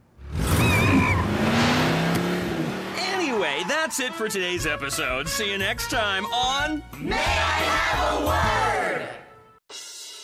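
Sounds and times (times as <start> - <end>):
dune buggy engine revving sound effect: 0.2 - 3.2
speech: 3.7 - 9.2.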